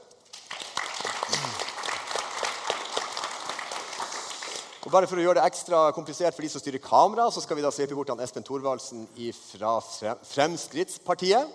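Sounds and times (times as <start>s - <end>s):
audience applause: 0.3s - 4.8s
speech: 4.9s - 11.5s.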